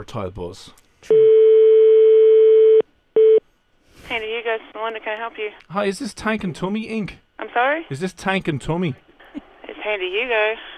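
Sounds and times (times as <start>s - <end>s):
speech: 0.0s - 1.3s, 4.1s - 9.1s, 9.8s - 10.7s
telephone ringback tone: 1.1s - 3.4s.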